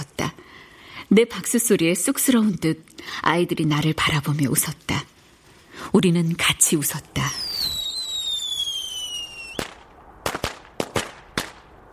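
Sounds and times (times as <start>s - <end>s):
speech: 1.1s - 5.1s, 5.9s - 7.4s
fireworks exploding: 7.3s - 11.8s.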